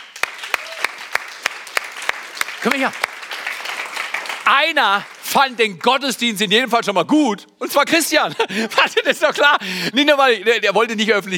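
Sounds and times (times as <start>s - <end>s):
audience applause: 0.0s - 6.0s
speech: 2.6s - 3.1s, 4.5s - 11.3s
laughter: 8.2s - 9.7s.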